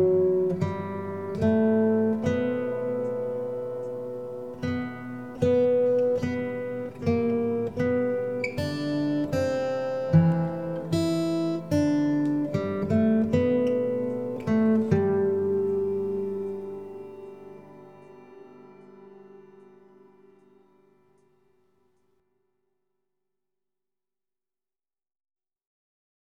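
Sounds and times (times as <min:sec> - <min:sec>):
Christmas carol music: 0:00.0 - 0:22.0.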